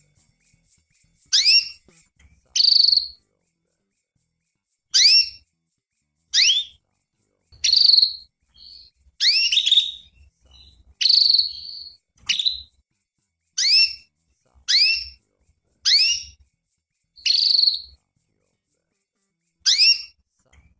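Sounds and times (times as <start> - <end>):
female canary calling with sharp sweeping chirps and buzzy notes: 0.0 - 20.7.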